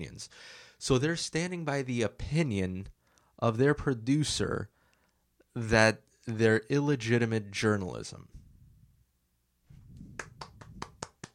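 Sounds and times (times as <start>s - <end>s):
speech: 0.0s - 4.8s, 5.6s - 8.4s
claps: 10.2s - 11.3s.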